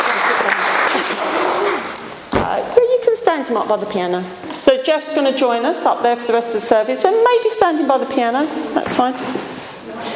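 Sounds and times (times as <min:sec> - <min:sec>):
church congregation clapping for its helpers during a service: 0:00.0 - 0:02.1
speech: 0:03.4 - 0:09.5.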